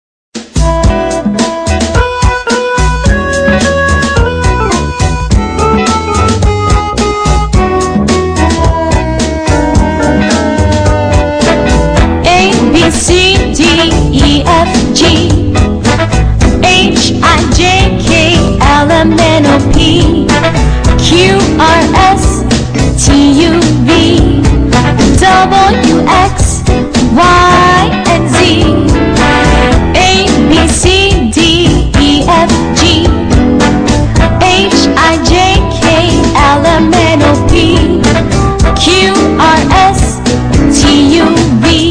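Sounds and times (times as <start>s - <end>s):
funky music: 0.4s - 41.9s.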